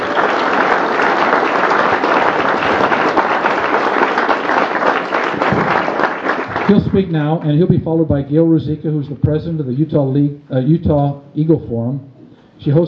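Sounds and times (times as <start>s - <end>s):
audience applause: 0.0s - 7.4s
speech: 6.7s - 12.8s.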